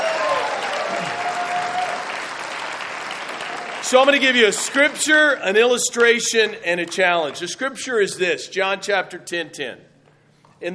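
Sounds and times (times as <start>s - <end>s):
audience clapping: 0.0s - 7.7s
speech: 3.9s - 9.9s.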